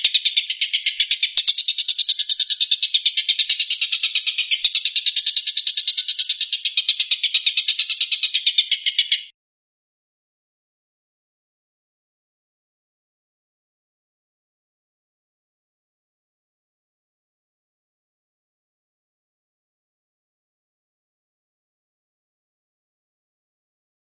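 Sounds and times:
stork-billed kingfisher rattling call: 0.0 - 9.3.

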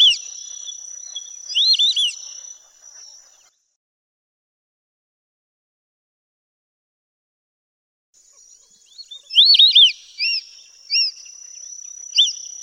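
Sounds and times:
white-faced whistling duck three-note whistled calls: 0.0 - 2.4, 9.2 - 11.2.

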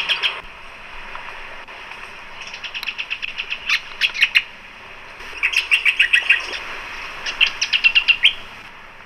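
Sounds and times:
Lichmera argentauris argentauris calls: 0.0 - 0.4, 2.3 - 8.6.

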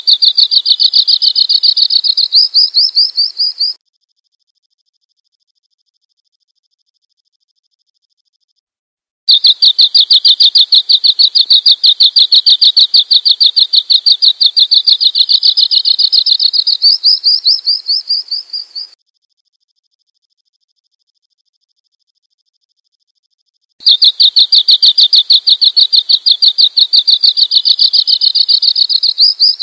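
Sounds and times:
bird chirping: 0.0 - 3.8, 9.3 - 19.0, 23.8 - 29.6.

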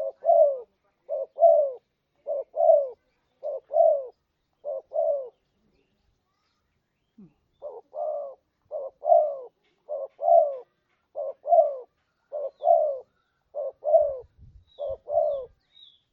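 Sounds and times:
spotted dove repeating two-part coos: 0.0 - 5.4, 7.6 - 15.6.

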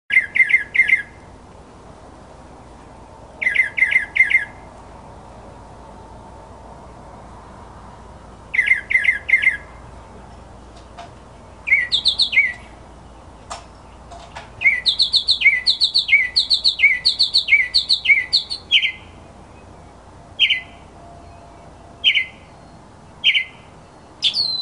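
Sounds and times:
mockingbird song: 0.1 - 1.2, 3.1 - 4.7, 8.4 - 24.5.

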